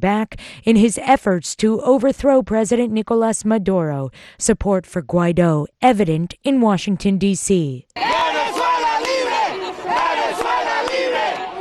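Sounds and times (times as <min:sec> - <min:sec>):
speech: 0:00.0 - 0:08.2
protesters chanting outside the Venezuelan embassy: 0:08.0 - 0:11.6.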